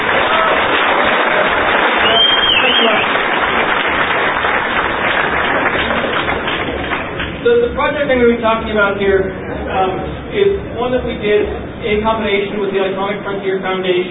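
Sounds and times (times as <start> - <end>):
audience applause: 0.0 - 7.4
speech: 8.1 - 14.0.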